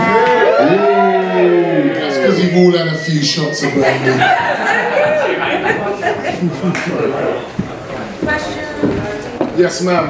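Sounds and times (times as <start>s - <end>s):
audience cheering and whooping: 0.0s - 6.2s
speech: 2.6s - 7.6s, 9.6s - 10.0s
laughter: 3.3s - 7.5s.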